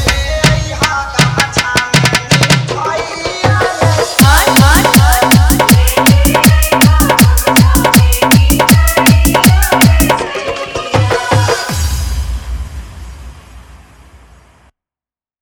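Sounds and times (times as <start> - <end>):
Bhojpuri bhakti devotional song: 0.0 - 12.5
dholak drum: 0.0 - 12.7
bass: 4.2 - 10.2.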